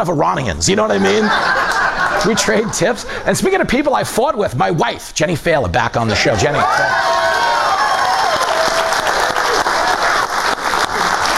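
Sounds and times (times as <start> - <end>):
speech: 0.0 - 7.2
laughter: 0.8 - 3.4, 9.4 - 11.3
audience applause: 6.6 - 11.3.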